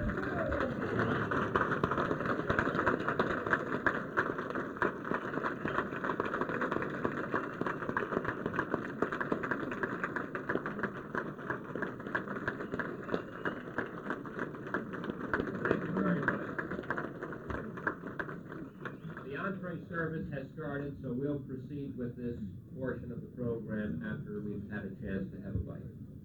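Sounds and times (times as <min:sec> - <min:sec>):
standing round of applause: 0:00.0 - 0:20.1
speech: 0:20.8 - 0:26.0.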